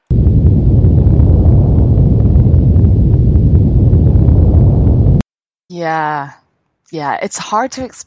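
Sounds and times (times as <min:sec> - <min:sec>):
crackling and popping: 0:00.0 - 0:05.3
earthquake rumble: 0:00.0 - 0:05.3
speech: 0:05.8 - 0:08.0.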